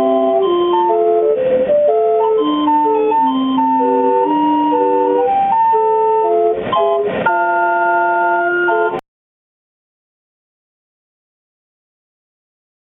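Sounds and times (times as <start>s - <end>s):
calliope music: 0.0s - 9.0s.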